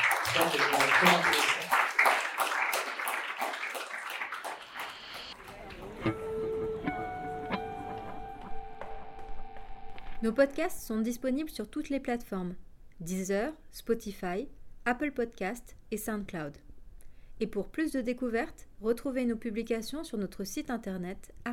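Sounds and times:
audience applause: 0:00.0 - 0:08.9
speech: 0:00.4 - 0:01.4, 0:10.3 - 0:16.6, 0:17.4 - 0:21.5
sustained tones: 0:04.3 - 0:10.6.

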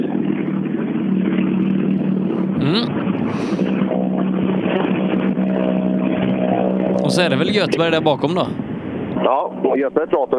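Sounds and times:
older Mitsubishi car engine droning: 0:00.0 - 0:10.3
speech: 0:02.6 - 0:03.7, 0:07.1 - 0:10.3.

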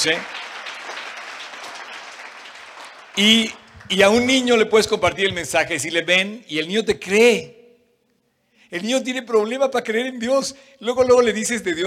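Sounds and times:
speech: 0:00.0 - 0:00.4, 0:03.2 - 0:07.6, 0:08.7 - 0:11.8
audience applause: 0:00.0 - 0:04.6.

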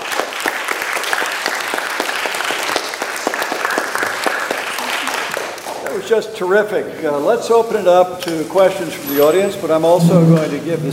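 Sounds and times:
crowd applauding: 0:00.0 - 0:06.0
speech: 0:06.1 - 0:10.9.

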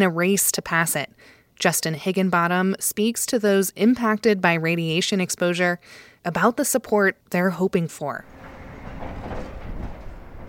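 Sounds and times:
speech: 0:00.0 - 0:08.4
trucks hauling material from Moab Uranium Mill Tailings Remedial Action Project: 0:08.2 - 0:10.4.

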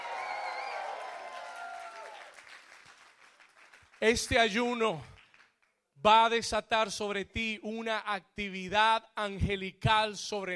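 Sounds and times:
crowd shouting and cheering: 0:00.0 - 0:02.3
audience applause: 0:00.0 - 0:04.0
speech: 0:04.0 - 0:05.1, 0:06.0 - 0:10.5.

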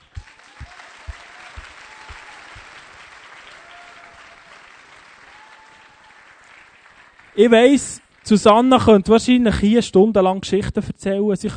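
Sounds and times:
audience applause: 0:00.0 - 0:08.6
speech: 0:07.4 - 0:11.5.

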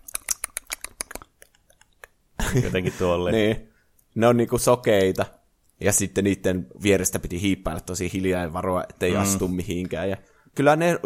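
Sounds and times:
voice imitating rapid mouth clicks of blind clicker zombies: 0:00.0 - 0:02.2
laughter: 0:02.4 - 0:03.4
speech: 0:02.5 - 0:11.0.

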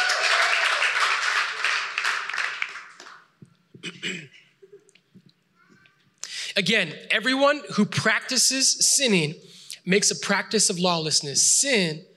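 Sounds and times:
audience applause: 0:00.0 - 0:03.3
speech: 0:06.6 - 0:12.1.

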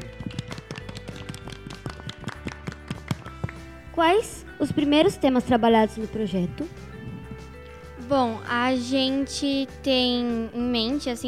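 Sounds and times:
small group of people clapping: 0:00.0 - 0:03.7
speech: 0:04.0 - 0:06.9, 0:08.1 - 0:11.2.

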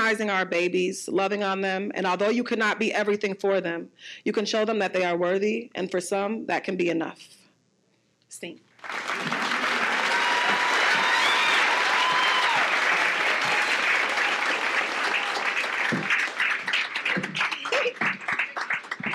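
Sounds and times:
speech: 0:00.1 - 0:07.4, 0:08.3 - 0:09.6
audience applause: 0:08.8 - 0:19.1
whoops and cheers: 0:09.2 - 0:15.6.

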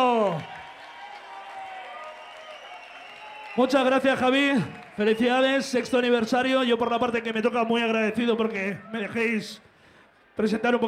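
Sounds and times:
audience applause: 0:00.0 - 0:06.5
speech: 0:03.6 - 0:09.7, 0:10.4 - 0:10.8.

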